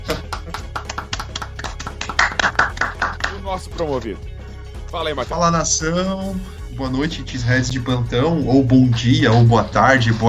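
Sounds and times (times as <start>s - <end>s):
applause: 0.0s - 3.5s
speech: 3.5s - 4.3s, 4.9s - 10.2s.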